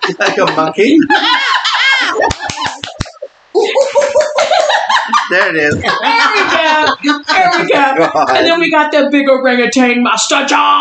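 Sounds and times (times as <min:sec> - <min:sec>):
laughter: 0:00.0 - 0:08.7
speech: 0:00.1 - 0:01.4, 0:05.3 - 0:10.7
hand clapping: 0:02.2 - 0:03.3.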